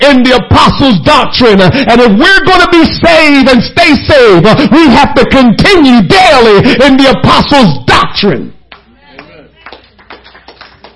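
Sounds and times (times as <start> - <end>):
speech: 0.1 - 8.6
hand claps: 8.7 - 10.9.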